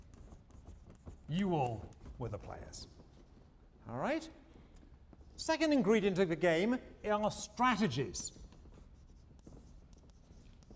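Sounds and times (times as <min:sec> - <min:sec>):
writing on a board during a lecture on game strategies: 0:00.0 - 0:03.6, 0:07.9 - 0:10.7
speech: 0:01.3 - 0:03.0, 0:03.9 - 0:04.4, 0:05.4 - 0:08.4.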